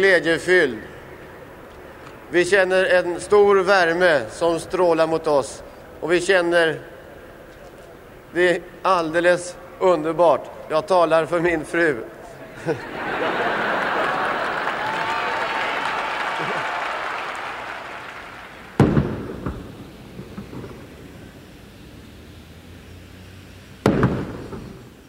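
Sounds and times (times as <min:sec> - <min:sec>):
speech: 0:00.0 - 0:00.9, 0:02.3 - 0:06.9, 0:08.3 - 0:13.4
laughter: 0:12.3 - 0:18.3
21-gun salute cannon shots from Skeppsholmen in Stockholm: 0:18.7 - 0:21.4, 0:23.8 - 0:24.8.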